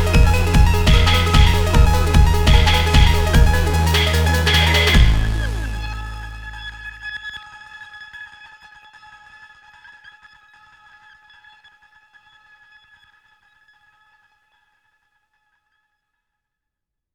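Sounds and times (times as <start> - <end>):
Arturia Minibrute 2 analog synthesizer: 0.0 - 7.2.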